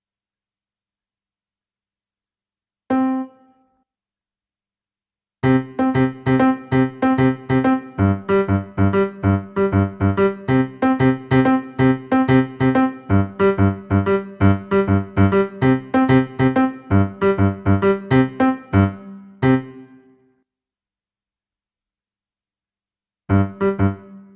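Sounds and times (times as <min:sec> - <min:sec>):
piano: 0:05.4 - 0:20.1, 0:23.3 - 0:24.3.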